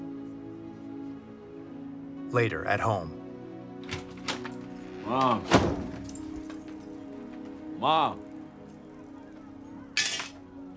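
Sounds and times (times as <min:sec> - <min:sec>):
speech: 0:02.3 - 0:03.2, 0:05.1 - 0:05.9, 0:07.8 - 0:08.3
keys tossed onto a table: 0:05.5 - 0:07.5, 0:09.9 - 0:10.4.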